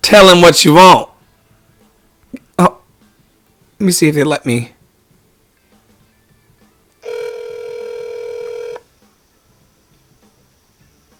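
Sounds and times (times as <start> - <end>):
speech: 0.1 - 1.1, 3.8 - 4.8
phone call ringing out: 7.0 - 8.8.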